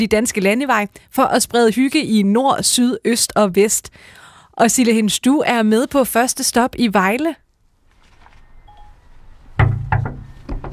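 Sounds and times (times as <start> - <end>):
speech: 0.0 - 7.4
knocking on a door: 9.6 - 10.7.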